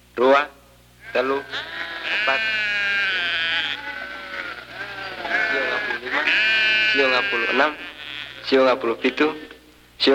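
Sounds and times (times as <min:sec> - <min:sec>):
speech: 0:00.2 - 0:00.6, 0:01.2 - 0:01.8, 0:07.2 - 0:07.9, 0:08.5 - 0:10.1
sheep bleating as a shepherd counts his flock: 0:01.0 - 0:09.4.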